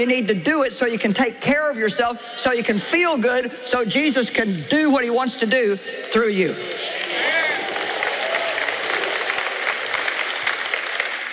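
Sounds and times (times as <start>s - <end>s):
speech: 0.0s - 6.8s
audience clapping: 6.0s - 11.3s.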